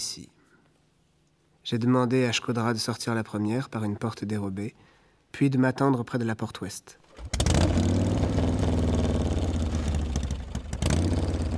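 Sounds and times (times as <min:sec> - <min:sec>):
speech: 0:00.1 - 0:00.4, 0:01.7 - 0:07.9
motorcycle engine revving: 0:07.2 - 0:11.5.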